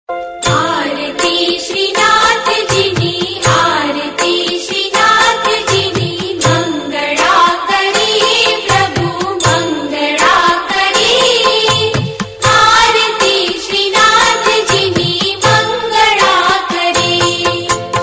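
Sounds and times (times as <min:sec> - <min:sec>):
aarti devotional singing: 0:00.5 - 0:17.8.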